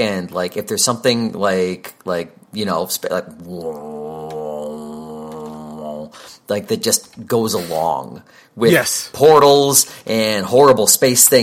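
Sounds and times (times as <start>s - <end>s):
speech: 0.0s - 4.0s, 6.5s - 11.4s
voice imitating the low groaning rumble of space horror: 3.5s - 6.1s.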